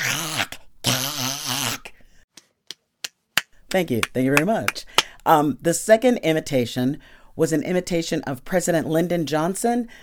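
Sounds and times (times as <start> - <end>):
voice imitating a cat choking on a bone: 0.0 - 2.0
speech: 3.7 - 10.0.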